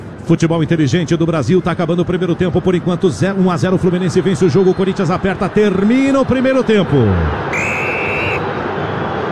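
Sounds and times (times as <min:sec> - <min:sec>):
speech: 0:00.3 - 0:07.8
stadium crowd booing: 0:06.9 - 0:09.2.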